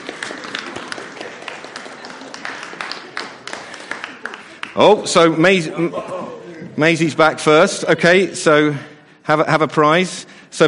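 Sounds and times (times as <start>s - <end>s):
audience clapping: 0.0s - 5.4s
speech: 4.8s - 6.2s, 6.8s - 10.6s.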